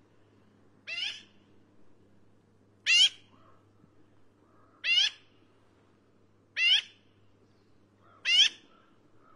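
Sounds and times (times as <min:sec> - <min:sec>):
Black-billed magpie Pica hudsonia harsh nasal squawks: 0:00.9 - 0:01.3, 0:02.9 - 0:03.2, 0:04.7 - 0:05.2, 0:06.6 - 0:07.0, 0:08.1 - 0:09.3.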